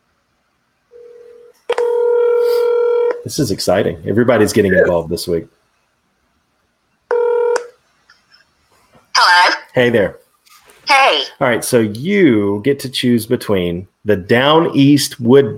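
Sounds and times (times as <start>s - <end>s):
telephone tones as a call is placed: 0.9s - 3.2s, 7.1s - 7.8s
speech: 3.2s - 5.6s, 9.8s - 10.2s, 10.9s - 15.5s.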